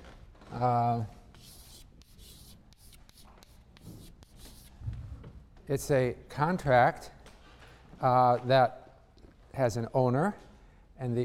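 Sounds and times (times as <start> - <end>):
speech: 0.6 - 1.2, 5.7 - 7.2, 8.0 - 8.8, 9.6 - 10.4, 11.0 - 11.2
pen scratching while handwriting a word: 1.4 - 4.8.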